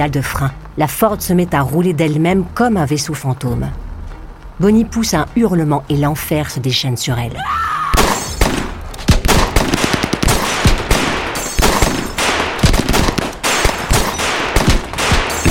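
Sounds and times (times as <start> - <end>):
speech: 0.0 - 3.8, 4.6 - 7.6
volley of gunfire, repeated rifle shots: 8.0 - 15.4.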